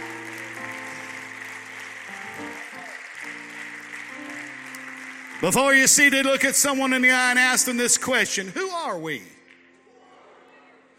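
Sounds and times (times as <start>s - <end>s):
audience clapping hands: 0.0s - 8.2s
speech: 5.4s - 9.4s.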